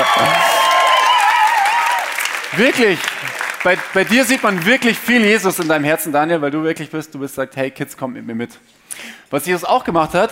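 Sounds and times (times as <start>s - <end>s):
audience applause: 0.0s - 5.8s
crowd cheering: 0.0s - 5.8s
speech: 2.5s - 10.2s.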